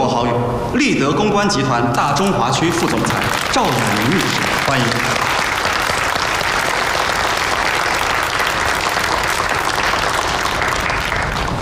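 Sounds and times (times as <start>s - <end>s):
speech: 0.2s - 5.4s
audience applause: 2.6s - 11.6s.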